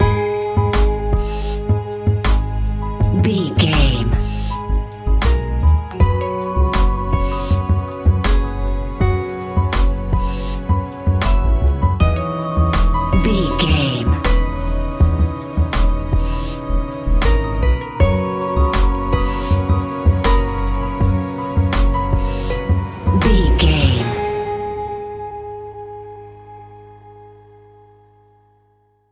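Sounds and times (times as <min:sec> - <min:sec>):
relaxed, chilling, haunting nocturnal music piece: 0:00.0 - 0:29.1.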